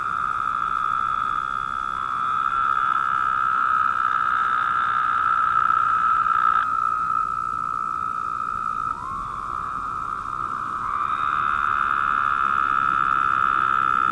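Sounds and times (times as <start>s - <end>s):
Woodhouse's toads buzzing chorus: 0.0s - 14.0s.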